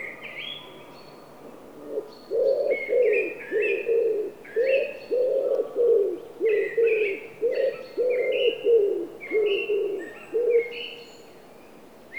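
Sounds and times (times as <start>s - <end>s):
wood pigeon Columba palumbus: 1.8s - 10.7s.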